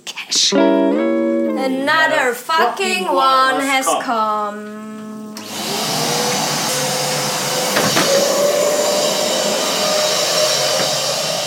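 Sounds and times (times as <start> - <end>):
speech: 0.4 - 1.0, 1.6 - 5.1
vacuum cleaner sucking up crumbs of an organic rice cake: 4.6 - 11.4.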